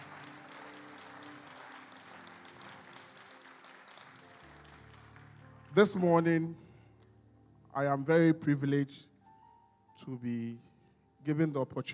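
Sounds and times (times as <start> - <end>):
audience clapping: 0.0 - 6.3
speech: 5.8 - 6.6, 7.8 - 9.1, 10.0 - 11.9.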